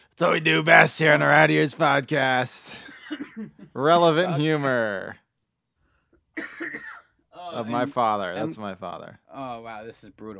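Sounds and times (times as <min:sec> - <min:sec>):
speech: 0:00.2 - 0:05.2, 0:06.4 - 0:10.3
man with a tickle in his throat coughing: 0:02.7 - 0:03.7, 0:06.4 - 0:07.2
faint breath: 0:05.8 - 0:06.2.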